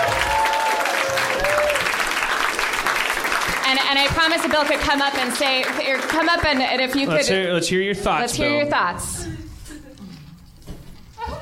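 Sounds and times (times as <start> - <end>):
faint whistles or cheers: 0.0 - 2.0
audience applause: 0.0 - 7.5
speech: 3.9 - 9.4.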